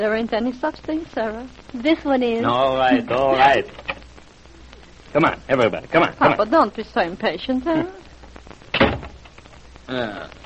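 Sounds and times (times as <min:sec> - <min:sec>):
speech: 0:00.0 - 0:03.8, 0:05.1 - 0:08.0, 0:09.9 - 0:10.4
door being tried and shut: 0:08.7 - 0:09.3.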